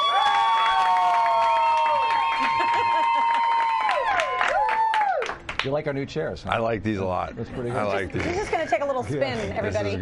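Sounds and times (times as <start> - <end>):
studio crowd cheering and applauding: 0.0 - 5.6
speech: 5.6 - 9.9.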